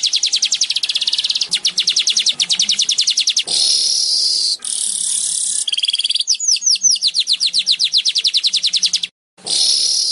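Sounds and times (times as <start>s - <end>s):
Asian golden weaver chattering: 0.0s - 10.0s.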